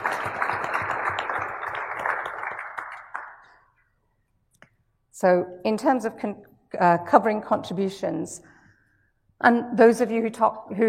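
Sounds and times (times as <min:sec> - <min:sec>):
audience applause for contributors: 0:00.0 - 0:03.5
speech: 0:05.2 - 0:08.5, 0:09.4 - 0:10.8.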